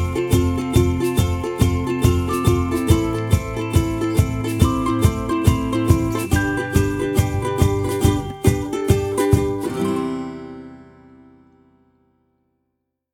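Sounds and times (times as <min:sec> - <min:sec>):
happy ukulele music: 0:00.0 - 0:11.6.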